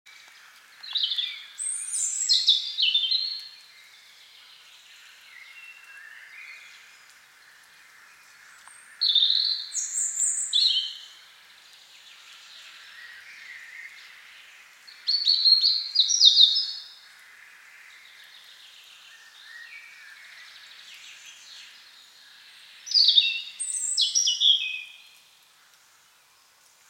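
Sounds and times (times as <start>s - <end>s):
European robin song: 0.1s - 17.0s, 17.9s - 25.4s.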